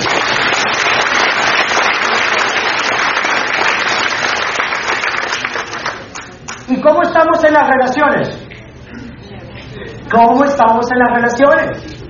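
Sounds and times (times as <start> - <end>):
applause: 0.0 - 6.7
speech: 7.4 - 8.4, 10.1 - 11.9.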